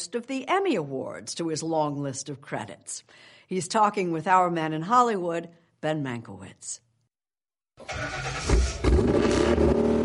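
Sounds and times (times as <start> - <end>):
speech: 0.0 - 6.8, 7.8 - 9.8
custom car engine starting and rumbling: 7.8 - 10.0.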